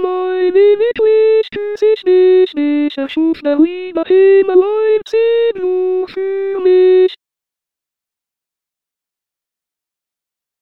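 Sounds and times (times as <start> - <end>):
alto singing: 0.0 - 7.2.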